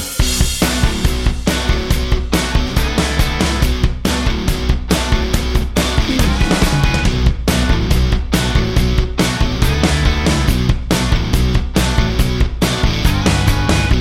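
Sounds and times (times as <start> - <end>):
backing track without lead guitar: 0.0 - 13.9.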